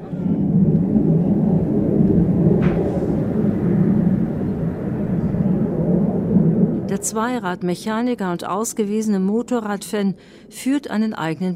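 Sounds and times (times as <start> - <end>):
military jet flying overhead: 0.0 - 8.2
speech: 7.0 - 11.5.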